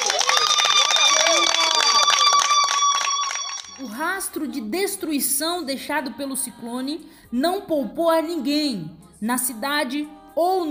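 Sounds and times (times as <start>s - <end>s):
audience applauding: 0.0s - 3.9s
speech: 4.2s - 10.7s.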